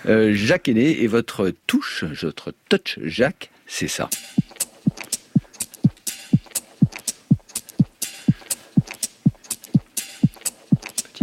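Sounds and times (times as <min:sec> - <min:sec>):
speech: 0:00.0 - 0:04.4
four-colour ballpoint pen clicking: 0:04.1 - 0:11.2.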